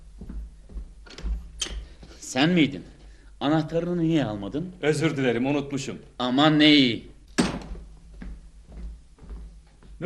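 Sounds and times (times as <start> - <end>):
speech: 2.3 - 7.1
front door thump: 7.4 - 7.9.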